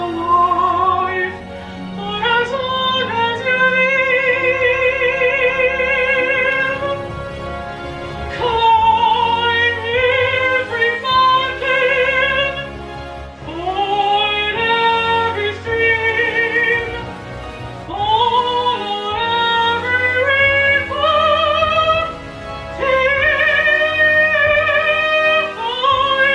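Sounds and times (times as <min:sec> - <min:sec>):
Broadway musical theatre singing: 0:00.0 - 0:26.3.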